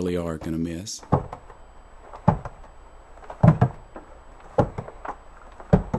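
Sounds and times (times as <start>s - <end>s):
speech: 0.0s - 1.2s
footsteps on the stairs of a Frankfort, Kentucky home: 2.1s - 2.7s, 3.3s - 3.8s, 4.5s - 5.9s.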